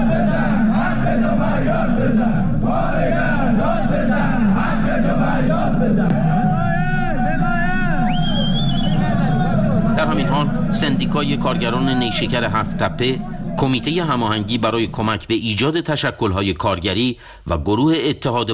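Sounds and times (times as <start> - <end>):
striking home-appliance factory workers chanting slogans at a protest rally in Alvand, Qazvin: 0.0 - 14.7
speech: 11.1 - 18.5.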